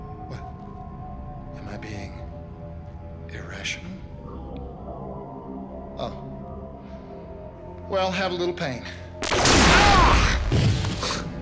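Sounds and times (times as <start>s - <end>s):
speech: 3.3s - 4.1s, 6.0s - 6.2s, 7.9s - 9.5s
gunshot sound effect from a TV scene: 9.2s - 11.3s.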